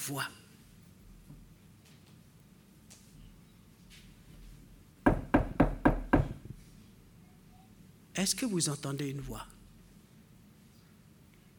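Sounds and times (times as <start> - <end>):
speech: 0.0 - 0.4, 8.2 - 9.6
knocking on a door: 5.0 - 6.6.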